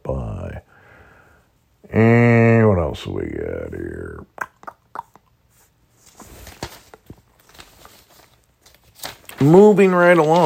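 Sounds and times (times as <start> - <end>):
speech: 2.9 - 4.4, 9.4 - 10.4
paper being crumpled and tossed: 6.0 - 10.4.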